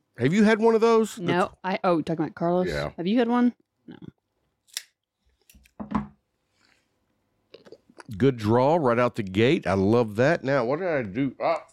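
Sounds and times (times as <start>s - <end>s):
speech: 0.2s - 4.2s, 8.1s - 11.7s
cigar cutter cutting a cigar: 4.7s - 5.8s.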